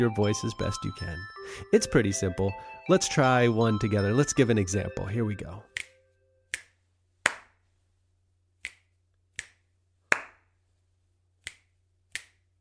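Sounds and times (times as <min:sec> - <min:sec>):
speech: 0:00.0 - 0:05.9
finger snaps: 0:05.7 - 0:07.5, 0:08.6 - 0:10.4, 0:11.4 - 0:12.5
hand clap: 0:05.8 - 0:07.6, 0:08.6 - 0:10.5, 0:11.4 - 0:12.5.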